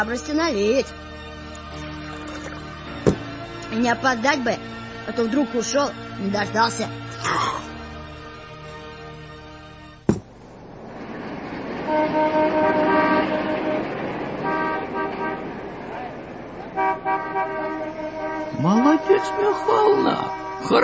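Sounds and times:
speech: 0.0 - 1.8, 3.7 - 7.7, 20.6 - 20.8
car horn honking: 11.8 - 20.8.

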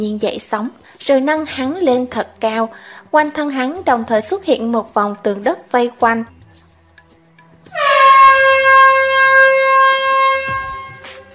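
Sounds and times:
speech: 0.0 - 6.4
long deep horn blast: 7.8 - 11.2.

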